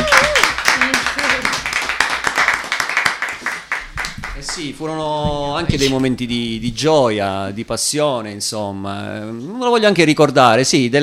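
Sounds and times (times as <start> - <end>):
applause: 0.0 - 4.7
speech: 4.6 - 11.0.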